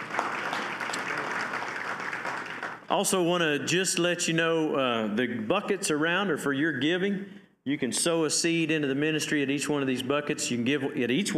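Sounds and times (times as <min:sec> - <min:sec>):
audience clapping: 0:00.0 - 0:03.2
speech: 0:02.9 - 0:11.3.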